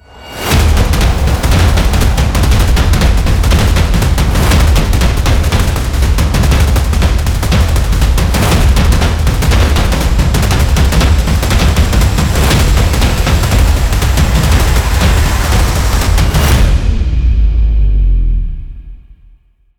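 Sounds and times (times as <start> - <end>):
tense horror thriller music: 0.0 - 19.1.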